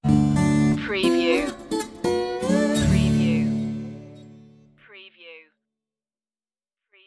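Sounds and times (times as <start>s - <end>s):
loose bluesy music stinger: 0.0s - 4.4s.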